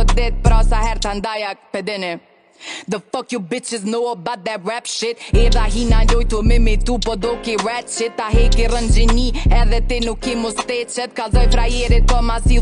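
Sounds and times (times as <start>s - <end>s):
freestyle beatboxing: 0.0s - 1.2s, 5.3s - 12.6s.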